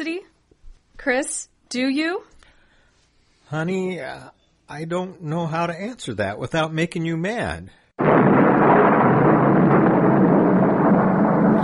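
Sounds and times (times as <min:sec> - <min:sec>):
speech: 0:01.0 - 0:02.4, 0:03.5 - 0:07.8
rolling thunder: 0:08.0 - 0:11.6.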